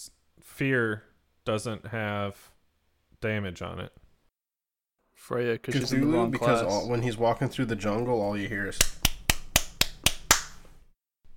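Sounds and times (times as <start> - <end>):
speech: 0.0 - 2.5, 3.2 - 4.0, 5.2 - 9.0
hands clapping: 8.8 - 10.6.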